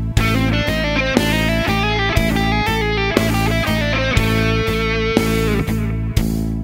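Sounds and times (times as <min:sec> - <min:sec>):
instrumental lick: 0:00.2 - 0:06.5.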